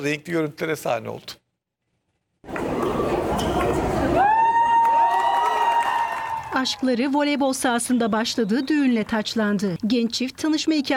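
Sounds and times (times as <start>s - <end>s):
speech: 0.0s - 1.4s, 6.6s - 10.9s
wedding guests cheering and clapping: 2.5s - 7.2s
long steady high-pitched whoop: 4.1s - 6.8s.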